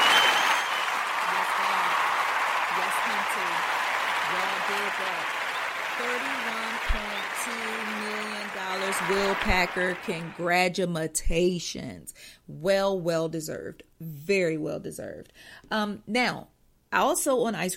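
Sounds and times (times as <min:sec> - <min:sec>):
audience applause: 0:00.0 - 0:10.4
speech: 0:09.1 - 0:17.7.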